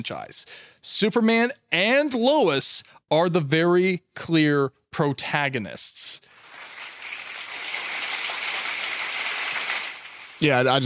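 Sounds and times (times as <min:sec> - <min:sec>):
speech: 0:00.0 - 0:06.3, 0:10.4 - 0:10.8
hand clapping applause: 0:06.5 - 0:10.4.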